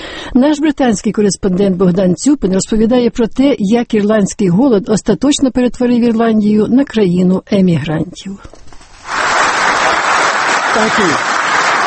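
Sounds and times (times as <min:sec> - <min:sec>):
speech: 0:00.4 - 0:08.6, 0:10.8 - 0:11.3
stormy applause at an Irish diaspora economic congress in Dublin: 0:09.0 - 0:11.8.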